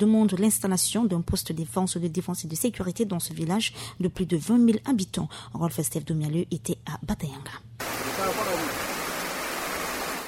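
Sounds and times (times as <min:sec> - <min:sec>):
speech: 0:00.0 - 0:07.8
heavy rain falling on a village of bamboo huts: 0:07.8 - 0:10.2.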